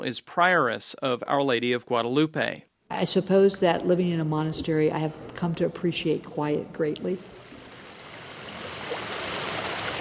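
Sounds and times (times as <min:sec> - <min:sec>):
speech: 0:00.0 - 0:07.4
man-made waterfall flowing: 0:07.8 - 0:10.0.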